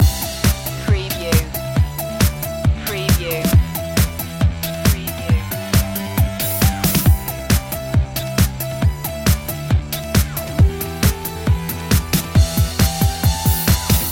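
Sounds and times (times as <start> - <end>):
digital music loop: 0.0 - 14.0.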